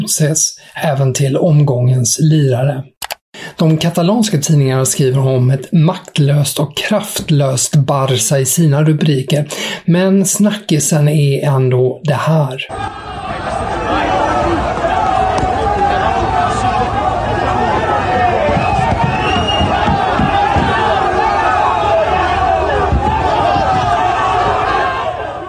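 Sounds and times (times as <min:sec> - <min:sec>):
speech: 0:00.1 - 0:02.9, 0:03.6 - 0:15.5
angry football supporters surrounding a car: 0:12.7 - 0:25.4.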